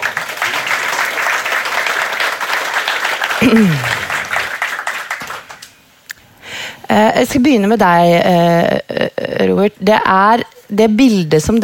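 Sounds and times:
audience applause: 0:00.0 - 0:05.7
speech: 0:03.4 - 0:04.0, 0:06.9 - 0:11.6.

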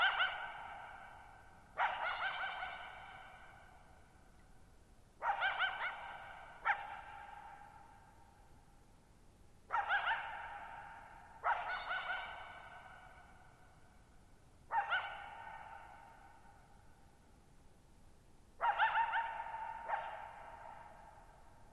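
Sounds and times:
coyote barking and yipping: 0:00.0 - 0:04.0, 0:05.2 - 0:08.0, 0:09.7 - 0:13.5, 0:14.7 - 0:16.6, 0:18.6 - 0:21.7.

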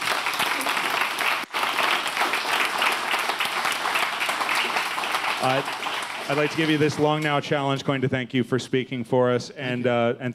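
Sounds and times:
audience applause: 0:00.0 - 0:07.2
speech: 0:05.4 - 0:10.3.

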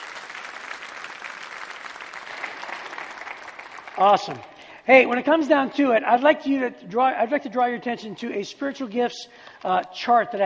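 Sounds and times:
audience applause: 0:00.0 - 0:04.6
speech: 0:04.0 - 0:10.4.

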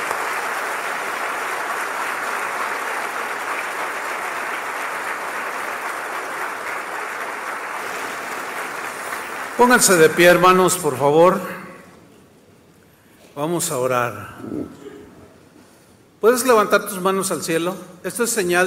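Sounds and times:
audience applause: 0:00.0 - 0:10.2
speech: 0:09.6 - 0:11.6, 0:13.4 - 0:14.8, 0:16.2 - 0:18.6.

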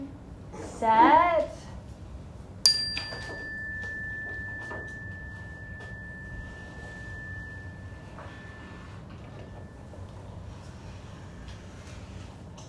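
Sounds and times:
speech: 0:00.8 - 0:01.2
bright chime ringing: 0:02.7 - 0:10.0.

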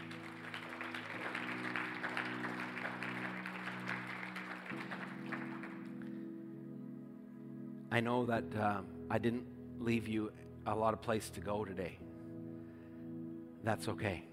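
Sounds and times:
audience hand clapping: 0:00.0 - 0:06.2
sustained organ chords: 0:00.0 - 0:14.3
speech: 0:08.0 - 0:12.1, 0:13.6 - 0:14.3.

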